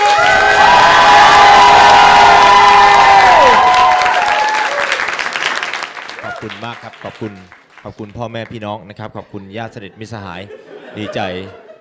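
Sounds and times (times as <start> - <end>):
audience applause and cheering: 0.0 - 8.1
speech: 6.6 - 11.6
laughter: 9.2 - 11.7.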